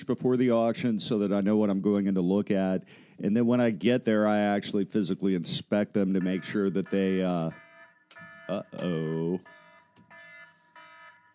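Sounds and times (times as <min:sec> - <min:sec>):
speech: 0:00.0 - 0:07.6, 0:08.5 - 0:09.6
electronic alarm reminder to take an antibiotic: 0:06.2 - 0:11.3.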